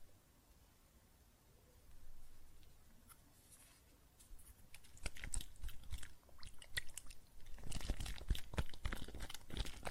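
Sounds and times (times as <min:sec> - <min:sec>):
soap foam crackling and popping: 0:04.7 - 0:09.8.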